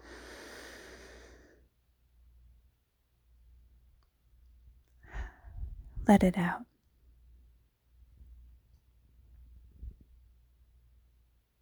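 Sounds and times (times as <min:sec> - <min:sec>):
deep breath in during a guided breathing exercise: 0:00.0 - 0:01.6, 0:05.1 - 0:05.8
speech: 0:06.1 - 0:06.7.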